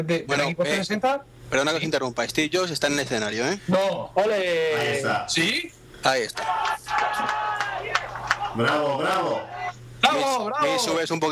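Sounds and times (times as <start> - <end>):
speech: 0.0 - 7.4, 8.6 - 9.5, 10.1 - 11.3
cheering voices: 6.3 - 9.8
audience applauding enthusiastically: 6.4 - 9.4.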